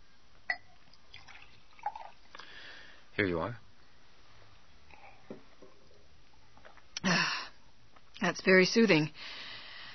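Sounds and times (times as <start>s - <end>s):
water poured from carafe into glass: 0.5s - 2.4s
speech: 3.2s - 3.6s, 8.4s - 9.4s.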